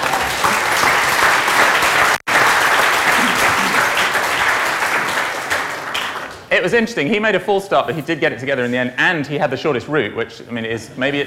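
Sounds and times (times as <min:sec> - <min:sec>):
audience applause: 0:00.0 - 0:06.5
speech: 0:06.6 - 0:11.2.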